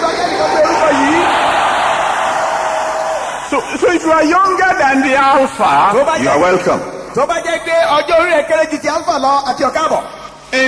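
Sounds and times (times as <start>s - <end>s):
church congregation shouting: 0.0s - 3.8s
speech: 3.5s - 10.6s.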